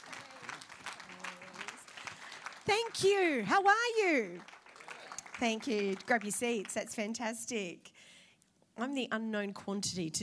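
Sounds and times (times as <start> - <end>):
church service audience applauding to welcome a pastor: 0.0 - 6.7
speech: 2.6 - 4.5, 5.4 - 7.9, 8.8 - 10.2.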